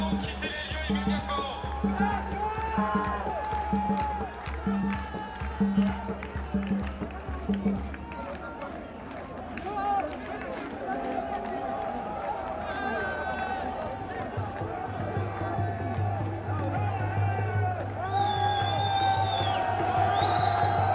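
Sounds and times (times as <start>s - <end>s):
crowd voices at the end of a street demonstration in Paris: 0.0s - 20.9s
bright whistles or shrill tones: 18.0s - 20.9s.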